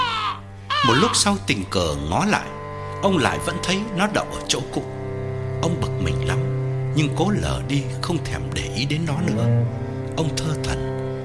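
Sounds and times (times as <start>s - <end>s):
crow cawing on a chinaberry branch: 0.0s - 1.4s
speech: 0.8s - 5.0s, 5.6s - 10.9s.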